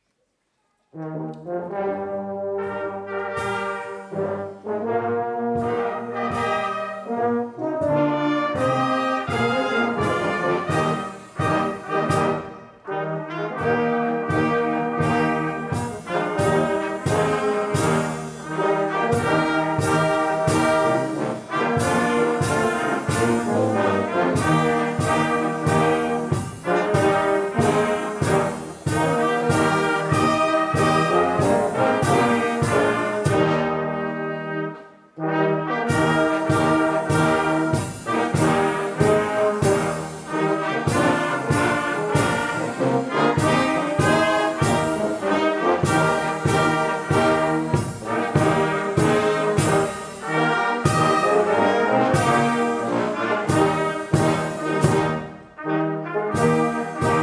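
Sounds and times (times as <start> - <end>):
fanfare: 1.0 - 57.2.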